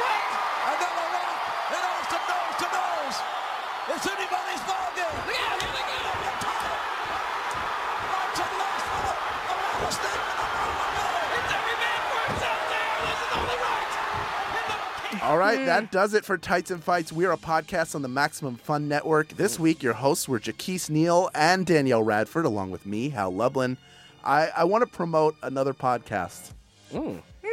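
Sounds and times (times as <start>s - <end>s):
commentator calling the match: 0.0s - 6.8s, 8.0s - 16.8s
wrestling arena crowd reaction: 0.0s - 16.0s
speech: 15.3s - 27.5s.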